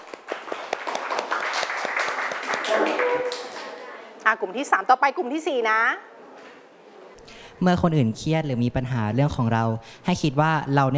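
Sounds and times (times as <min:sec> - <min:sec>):
classmates applauding: 0:00.0 - 0:04.0
speech: 0:04.2 - 0:06.1, 0:07.6 - 0:10.9.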